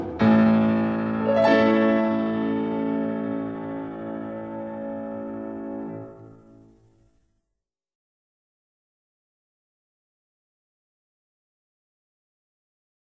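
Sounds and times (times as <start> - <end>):
violin: 0.2 - 6.2.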